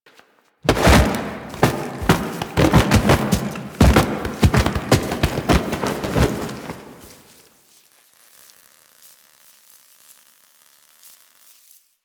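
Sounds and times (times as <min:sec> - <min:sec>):
foley object rolling: 0:00.7 - 0:07.2.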